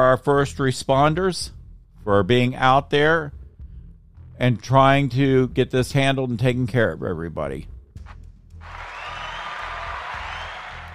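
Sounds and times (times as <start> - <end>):
speech: 0.0 - 3.4, 4.4 - 7.7
applause sound effect: 8.1 - 10.9.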